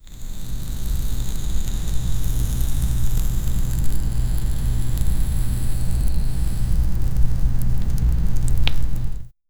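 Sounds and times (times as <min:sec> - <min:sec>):
lava burning: 0:00.0 - 0:09.3.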